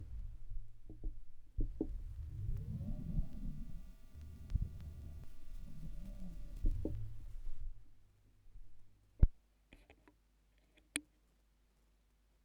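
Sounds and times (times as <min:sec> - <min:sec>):
vinyl record noise: 0:00.0 - 0:09.4.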